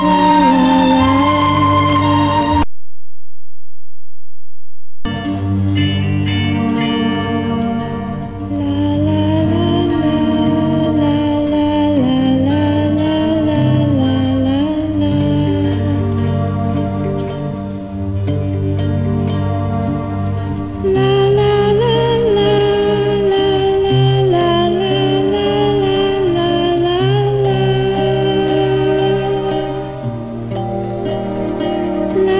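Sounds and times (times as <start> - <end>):
film music: 0.0 - 2.7, 5.1 - 32.3.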